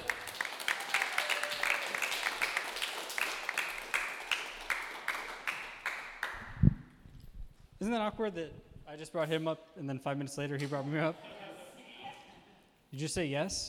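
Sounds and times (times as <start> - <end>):
audience applause: 0.0 - 6.4
speech: 7.8 - 11.3, 12.9 - 13.6.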